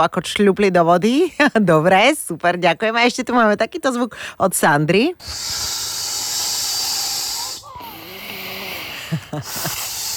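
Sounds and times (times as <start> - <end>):
speech: 0.0 - 6.2, 9.1 - 9.9
pump inflating something inflatable: 5.2 - 8.5, 9.4 - 10.1.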